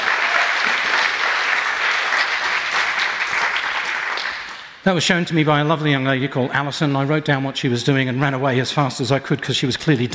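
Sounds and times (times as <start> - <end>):
audience applause: 0.0 - 4.8
speech: 4.8 - 10.1.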